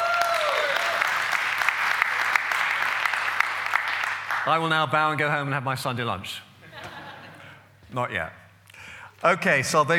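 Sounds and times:
audience applauding: 0.0 - 4.9
speech: 4.4 - 6.5, 7.9 - 8.4, 9.2 - 9.9
laughter: 6.6 - 7.7.

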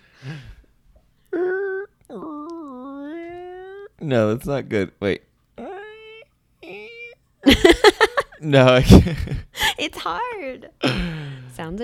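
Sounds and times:
voice imitating a creaky door opening: 1.3 - 4.1, 5.6 - 7.2
speech: 4.0 - 5.3, 8.4 - 11.8.

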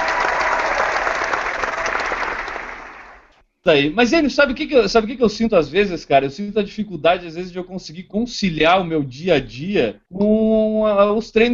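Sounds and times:
audience applause: 0.0 - 3.3
speech: 3.6 - 11.5.

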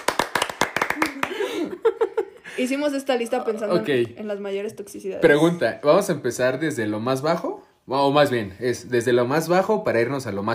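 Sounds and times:
sharp hand claps: 0.0 - 1.5
speech: 2.6 - 10.5.

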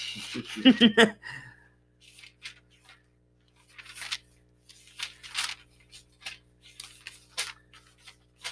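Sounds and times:
laughter: 0.4 - 1.2
thin Bible pages being flipped and rustled: 2.0 - 8.4.

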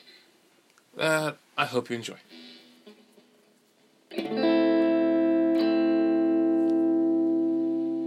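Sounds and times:
speech: 1.0 - 2.4
electric guitar instrumental: 2.3 - 8.0.

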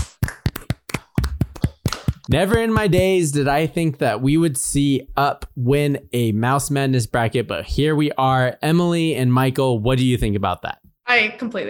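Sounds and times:
hands clapping: 0.0 - 3.2
speech: 2.3 - 11.6.

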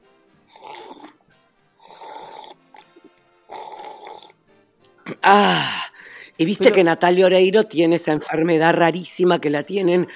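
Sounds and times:
slurping tea: 0.5 - 1.2, 1.8 - 4.4
speech: 5.2 - 5.8, 6.4 - 10.1.

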